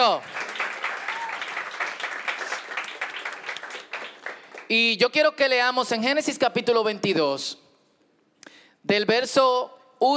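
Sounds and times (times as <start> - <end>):
speech: 0.0 - 0.4, 4.7 - 7.6, 8.8 - 10.1
audience applauding loudly: 0.0 - 4.7.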